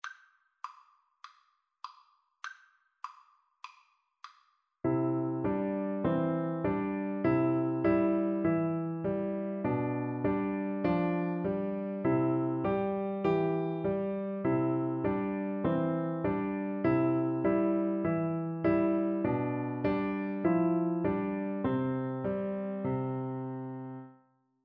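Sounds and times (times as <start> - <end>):
piano duet: 4.9 - 24.2.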